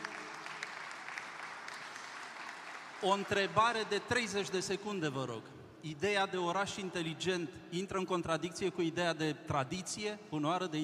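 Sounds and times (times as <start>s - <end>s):
audience applause: 0.0s - 3.4s
speech: 3.0s - 10.8s.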